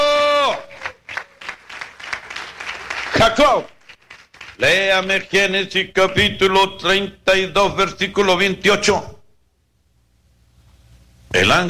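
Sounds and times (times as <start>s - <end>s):
church congregation applauding: 0.0s - 5.4s
speech: 3.2s - 3.8s, 4.6s - 9.2s, 11.3s - 11.6s.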